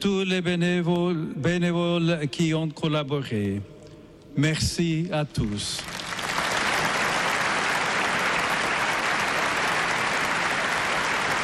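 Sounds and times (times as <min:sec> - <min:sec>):
speech: 0:00.0 - 0:03.8, 0:04.4 - 0:06.0
church audience applause: 0:05.8 - 0:11.4.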